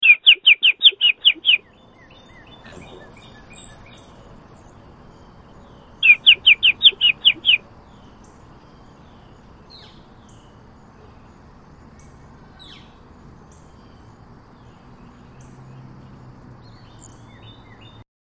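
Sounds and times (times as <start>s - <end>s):
birds: 0.0s - 18.0s.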